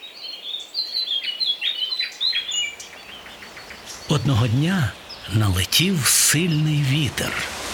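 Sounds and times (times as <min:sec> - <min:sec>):
nightingales singing: 0:00.0 - 0:07.4
speech: 0:04.1 - 0:07.6.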